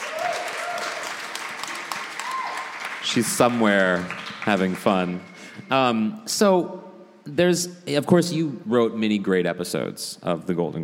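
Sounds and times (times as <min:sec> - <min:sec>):
audience applause: 0:00.0 - 0:05.6
speech: 0:03.0 - 0:10.8.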